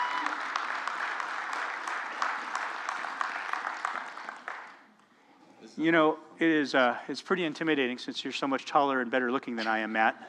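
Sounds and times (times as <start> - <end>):
church congregation clapping to welcome Awana program commanders: 0.0 - 4.9
speech: 5.8 - 10.2.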